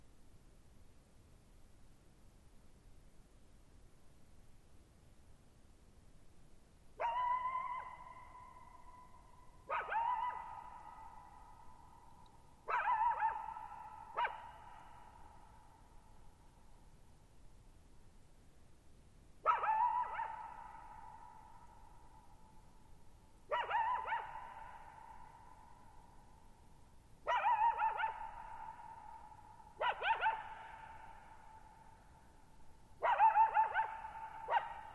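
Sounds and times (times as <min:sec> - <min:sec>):
coyote howling and yipping: 0:07.0 - 0:11.6, 0:12.7 - 0:15.0, 0:19.5 - 0:21.7, 0:23.5 - 0:25.9, 0:27.3 - 0:31.8, 0:33.0 - 0:34.9.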